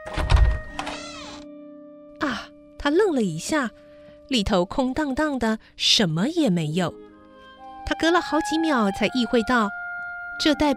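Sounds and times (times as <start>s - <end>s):
door forcefully pushed open: 0.0s - 1.4s
speech: 2.3s - 7.1s, 7.9s - 9.8s, 10.4s - 10.7s.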